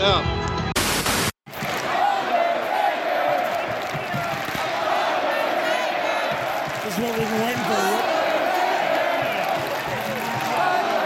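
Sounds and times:
speech: 0.0s - 0.4s
harsh static burst: 0.8s - 1.4s
arena crowd cheering and jeering in Atlanta: 1.5s - 11.0s.

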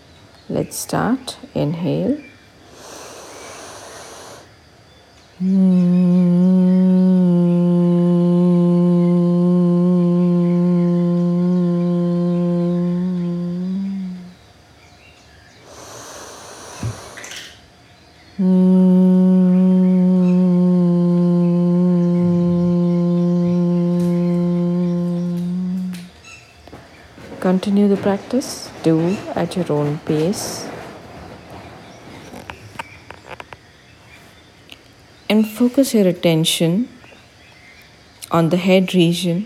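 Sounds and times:
speech: 0.5s - 2.3s, 5.4s - 5.9s, 27.6s - 30.7s, 35.3s - 37.0s, 38.3s - 39.4s
humming chant: 5.4s - 14.5s, 18.3s - 30.9s.

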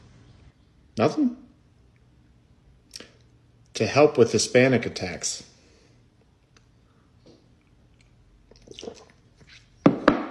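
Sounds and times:
speech: 1.0s - 1.4s, 3.8s - 5.5s
wet mouth slurping: 8.0s - 9.7s.

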